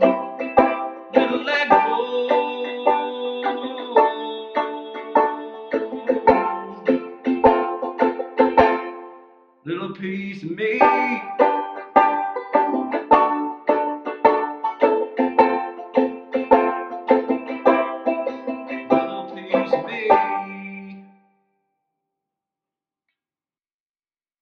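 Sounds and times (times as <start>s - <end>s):
groove music: 0.0s - 9.3s, 10.8s - 20.6s.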